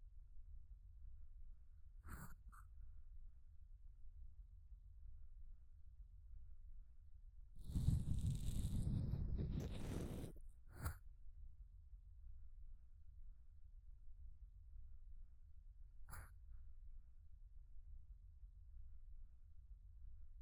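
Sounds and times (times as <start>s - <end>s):
ear cleaning sound effect: 7.6s - 10.4s.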